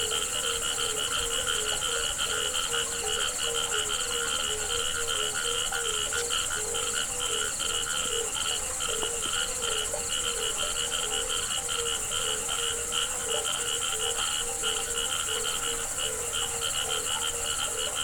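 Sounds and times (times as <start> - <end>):
continuous high insect buzz from crickets: 0.0 - 18.0
frogs croaking: 0.0 - 18.0.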